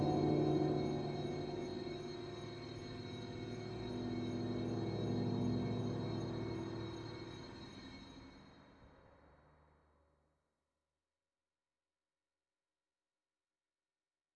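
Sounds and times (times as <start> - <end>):
ambience: 0.0 - 8.3.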